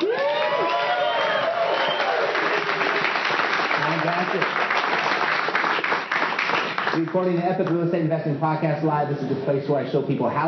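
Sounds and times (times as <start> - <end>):
audience whoops and shouts: 0.0 - 2.4
live audience clapping at a real estate investing event in Redondo Beach: 0.0 - 7.9
speech: 4.3 - 4.6, 7.0 - 10.4.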